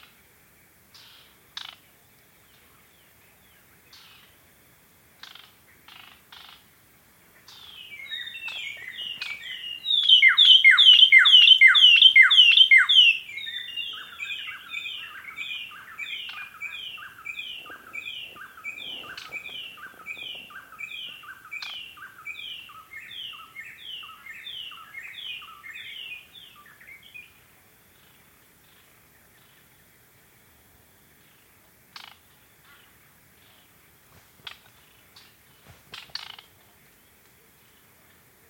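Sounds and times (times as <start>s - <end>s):
White-browed robin-chat song: 7.6s - 27.3s.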